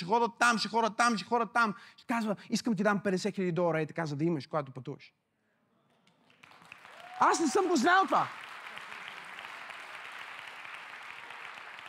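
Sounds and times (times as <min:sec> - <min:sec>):
speech: 0:00.0 - 0:05.2, 0:07.2 - 0:08.4
weak listless applause from a church congregation: 0:06.2 - 0:11.8.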